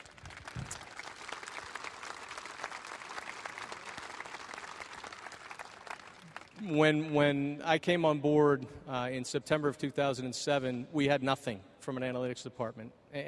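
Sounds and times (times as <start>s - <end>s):
audience applause at a baseball front-office talk on analytics: 0.0s - 6.6s
speech: 6.6s - 13.2s.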